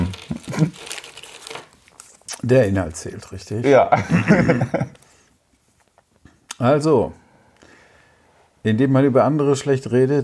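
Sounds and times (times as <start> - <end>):
fortune cookie plastic wrapper torn and crumpled: 0.0 - 2.8
speech: 0.6 - 0.8, 2.4 - 5.0, 6.6 - 7.2, 8.6 - 10.2
laughter: 4.0 - 5.0.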